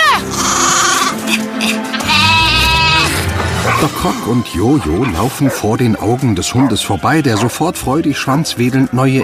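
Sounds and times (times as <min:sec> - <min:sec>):
sheep bleating: 0:00.1 - 0:03.8
speech: 0:04.0 - 0:09.1.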